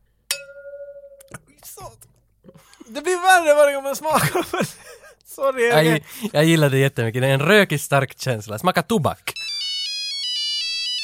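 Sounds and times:
beer glass clink during a toast: 0:00.3 - 0:01.5
speech: 0:01.3 - 0:09.3
laughter: 0:04.1 - 0:06.2.

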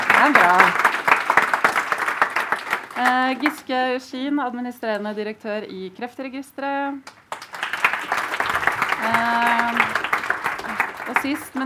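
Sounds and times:
audience applause: 0:00.0 - 0:03.6, 0:07.3 - 0:11.6
speech: 0:00.2 - 0:00.9, 0:03.0 - 0:07.2, 0:09.2 - 0:09.9, 0:11.2 - 0:11.6.

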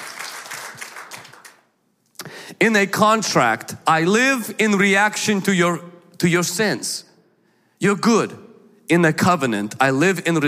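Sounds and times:
audience applause: 0:00.0 - 0:01.6
speech: 0:02.6 - 0:07.1, 0:07.8 - 0:10.4.

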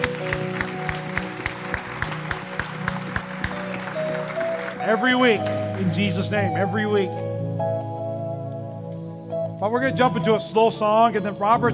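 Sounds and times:
audience clapping: 0:00.0 - 0:06.7
sustained low organ-like chords: 0:00.0 - 0:11.7
speech: 0:04.9 - 0:07.7, 0:09.6 - 0:11.7.

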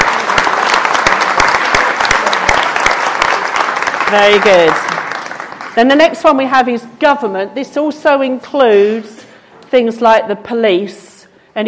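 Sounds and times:
crowd clapping: 0:00.0 - 0:05.9
speech: 0:04.1 - 0:04.9, 0:05.8 - 0:11.0.

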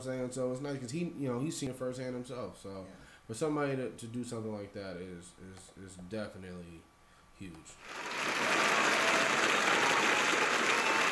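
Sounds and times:
speech: 0:00.0 - 0:10.2
round of applause: 0:07.8 - 0:11.1.

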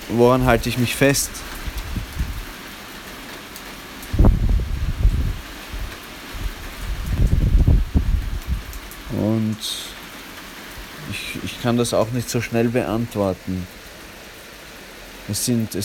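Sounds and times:
thunder rumbling: 0:00.0 - 0:02.6, 0:04.0 - 0:09.2
rain hissing: 0:00.0 - 0:15.8
speech: 0:00.1 - 0:01.6, 0:09.6 - 0:09.9, 0:11.6 - 0:13.8, 0:15.3 - 0:15.8.

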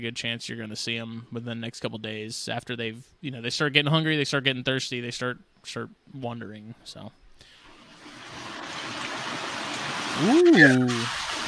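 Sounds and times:
speech: 0:00.0 - 0:07.2, 0:10.2 - 0:11.3
rain and wind: 0:07.9 - 0:11.4
person exclaiming: 0:10.2 - 0:11.1.

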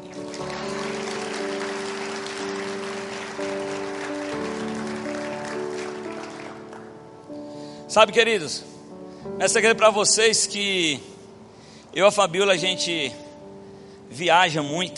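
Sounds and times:
audience applause: 0:00.0 - 0:07.0
speech: 0:07.9 - 0:08.8, 0:09.4 - 0:11.2, 0:11.9 - 0:13.2, 0:14.1 - 0:14.9.

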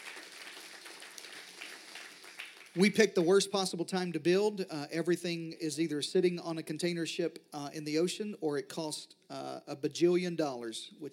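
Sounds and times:
audience applauding: 0:00.0 - 0:02.9
speech: 0:02.8 - 0:11.1.

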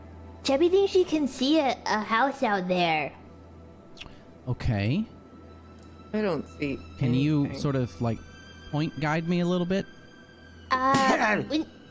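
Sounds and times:
speech: 0:00.5 - 0:03.2, 0:04.0 - 0:05.1, 0:06.1 - 0:10.0, 0:10.7 - 0:11.8
sneeze: 0:10.8 - 0:11.5.

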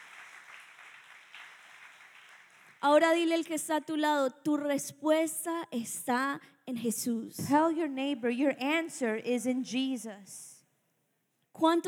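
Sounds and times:
audience applauding: 0:00.0 - 0:02.8
speech: 0:02.8 - 0:10.5, 0:11.6 - 0:11.8.

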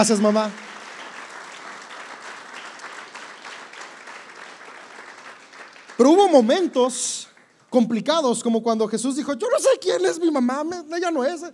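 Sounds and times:
speech: 0:00.0 - 0:00.7, 0:06.0 - 0:11.5
audience applause: 0:00.0 - 0:07.2.

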